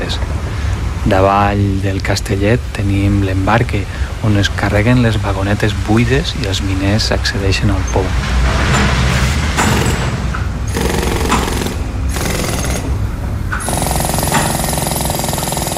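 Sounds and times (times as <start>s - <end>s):
speech: 0.1s - 0.4s, 1.0s - 8.9s
heavy industrial mining machinery clanking and grinding: 6.8s - 15.7s
steady mechanical drone: 7.2s - 15.7s
rhythmic metallic hammering: 8.1s - 15.7s.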